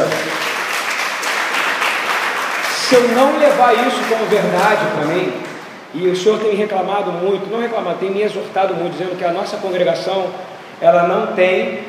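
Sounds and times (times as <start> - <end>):
audience applause: 0.0 - 5.5
speech: 2.9 - 11.8.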